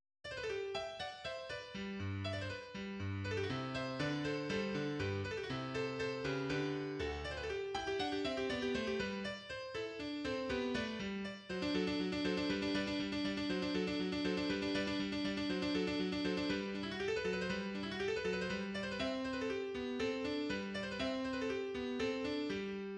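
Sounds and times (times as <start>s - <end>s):
sonata coda in G major: 0.4s - 22.9s.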